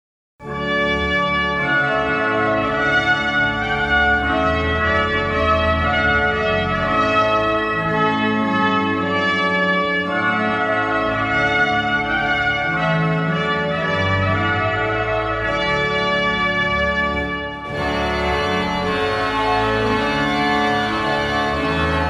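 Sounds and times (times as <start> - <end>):
trumpet piece: 0.4 - 22.0.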